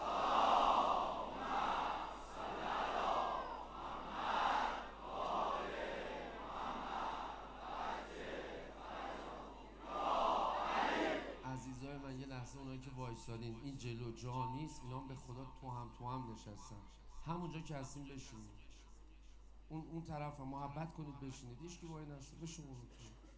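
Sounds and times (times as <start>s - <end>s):
crowd reciting salawat in unison: 0.0s - 11.5s
speech: 12.8s - 18.6s, 19.7s - 23.2s.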